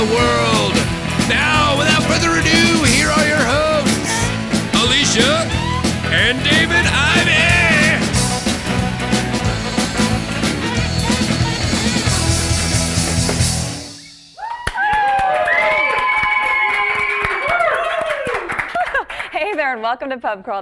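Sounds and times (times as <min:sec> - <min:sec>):
live studio audience clapping and cheering: 0:00.0 - 0:13.6, 0:14.4 - 0:19.4
audience shouts and whoops: 0:14.4 - 0:18.5
speech: 0:19.9 - 0:20.6.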